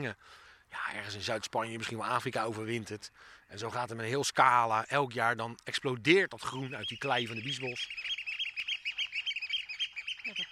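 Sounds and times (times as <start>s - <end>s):
speech: 0.0s - 8.2s
oystercatchers calling: 6.2s - 10.5s.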